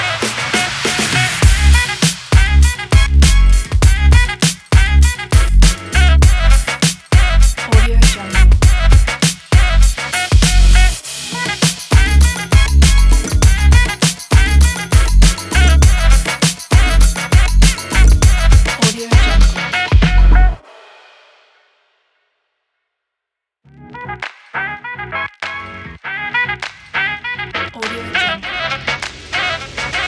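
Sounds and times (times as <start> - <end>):
funk hip hop drum kit beat: 0.0 - 20.7.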